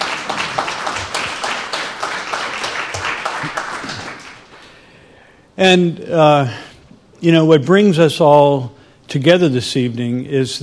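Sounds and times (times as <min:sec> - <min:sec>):
audience applause: 0:00.0 - 0:04.7
speech: 0:05.6 - 0:06.6, 0:07.2 - 0:10.6.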